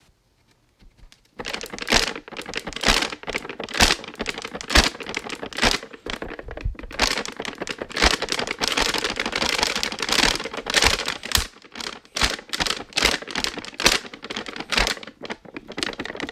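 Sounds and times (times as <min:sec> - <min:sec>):
paper instrument: 0:01.0 - 0:16.3.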